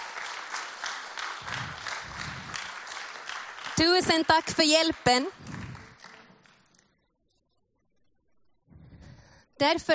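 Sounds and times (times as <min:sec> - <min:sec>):
audience applause: 0:00.0 - 0:06.8
speech: 0:03.8 - 0:05.4, 0:09.6 - 0:09.9.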